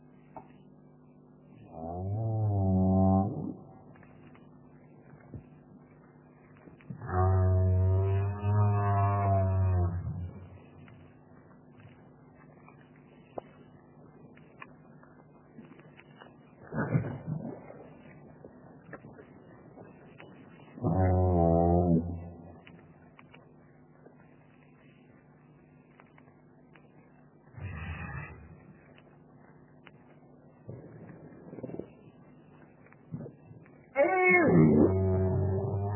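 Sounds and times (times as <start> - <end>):
right whale vocalizations: 1.7 - 3.7, 7.0 - 10.6, 20.8 - 22.7, 33.9 - 35.9
low rumble: 2.8 - 35.9.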